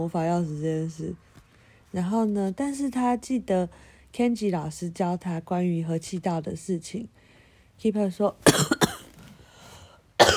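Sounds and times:
speech: 0.0s - 1.3s, 1.9s - 7.2s, 7.8s - 8.7s
coughing: 8.4s - 9.2s, 10.2s - 10.3s.

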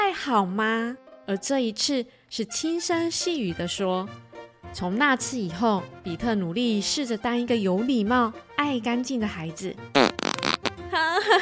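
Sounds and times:
speech: 0.2s - 11.3s
voice imitating a fart with buzzy vocal blurts: 9.9s - 10.8s.

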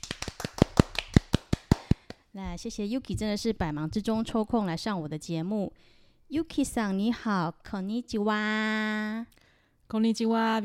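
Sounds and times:
people clapping: 0.0s - 2.2s
speech: 2.4s - 10.6s.

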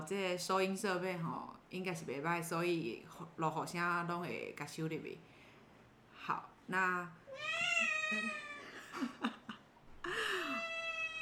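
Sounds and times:
speech: 0.0s - 5.3s, 6.2s - 8.4s
cat meowing loudly: 7.3s - 8.6s, 10.6s - 11.2s.

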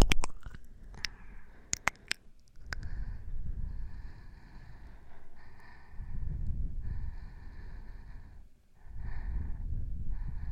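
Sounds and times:
slow rough breathing: 0.7s - 10.5s.

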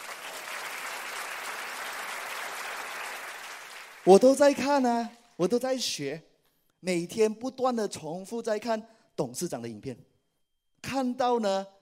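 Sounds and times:
audience applause: 0.0s - 4.1s
speech: 4.0s - 10.1s, 10.8s - 11.8s.

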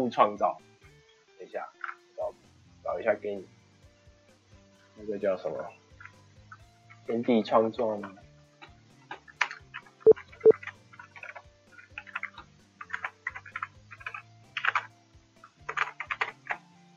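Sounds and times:
speech: 0.0s - 0.7s, 1.4s - 1.9s, 2.9s - 3.6s, 5.0s - 5.8s, 7.1s - 8.2s
typing on a computer keyboard: 9.4s - 16.6s.

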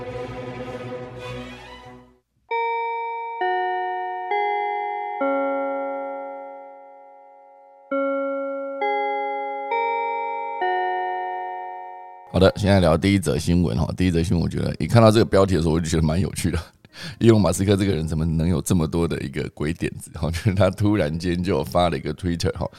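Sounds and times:
melodic bell chime: 2.5s - 12.5s
speech: 12.4s - 22.7s.

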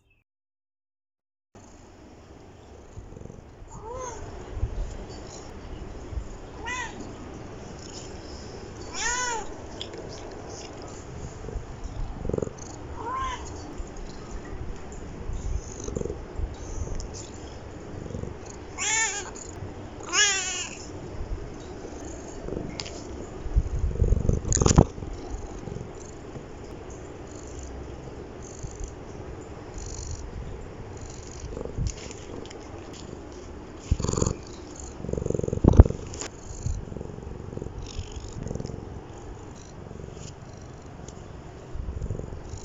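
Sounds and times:
pet cat purring: 2.6s - 42.6s
pet cat meowing: 3.7s - 4.2s, 6.6s - 7.1s, 8.8s - 9.6s, 12.9s - 13.6s, 18.8s - 20.9s.

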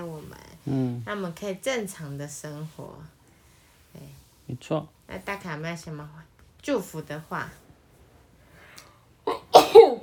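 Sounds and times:
speech: 0.7s - 3.2s, 4.0s - 7.6s
sneeze: 9.3s - 10.0s.

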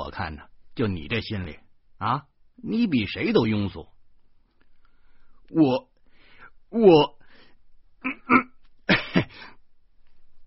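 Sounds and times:
speech: 0.2s - 3.9s, 5.5s - 5.9s, 6.7s - 7.2s, 8.0s - 8.5s
cough: 8.0s - 9.3s.

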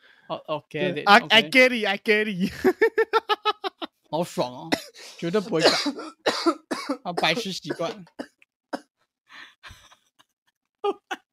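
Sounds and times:
speech: 0.3s - 2.9s, 4.1s - 8.3s
laughter: 2.4s - 3.9s
person coughing: 4.7s - 8.9s.

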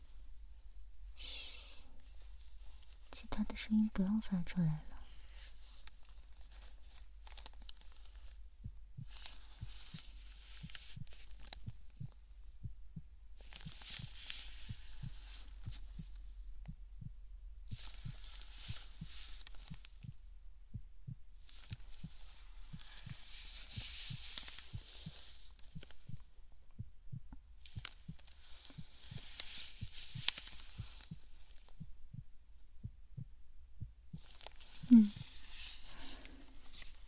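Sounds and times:
constant low hum: 0.0s - 37.0s
heartbeat heard through a stethoscope: 1.9s - 37.0s
speech: 3.3s - 4.9s.

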